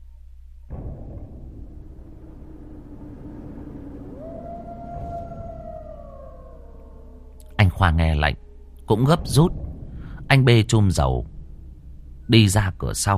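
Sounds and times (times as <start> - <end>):
long eerie monster howl: 2.2 - 8.6
speech: 7.8 - 9.7, 10.3 - 11.3, 12.3 - 13.1.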